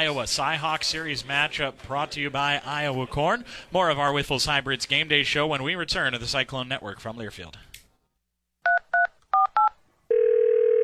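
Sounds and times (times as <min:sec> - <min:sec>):
speech: 0:00.0 - 0:07.7
steady loud phone tone: 0:08.7 - 0:10.8.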